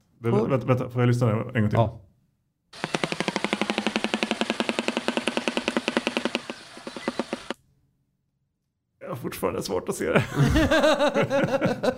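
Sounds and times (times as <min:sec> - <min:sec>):
speech: 0:00.2 - 0:02.1, 0:09.3 - 0:11.9
shoebill clattering its bill: 0:02.8 - 0:07.6
laughter: 0:10.2 - 0:11.9.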